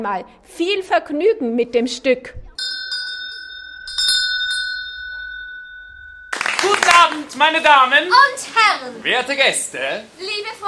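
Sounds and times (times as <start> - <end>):
speech: 0.0 - 2.5, 7.0 - 10.6
theatre bell ringing before the play: 2.6 - 7.1.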